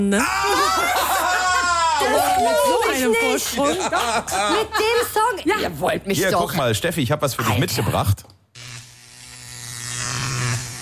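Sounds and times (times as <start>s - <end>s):
speech: 0.0s - 0.5s, 2.0s - 8.4s
laughter: 0.1s - 5.8s
electric shaver buzzing: 8.5s - 10.7s.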